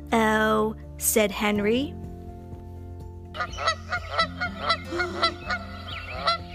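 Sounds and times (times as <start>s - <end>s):
speech: 0.1s - 2.0s, 3.4s - 3.8s
goose honking: 3.4s - 6.5s.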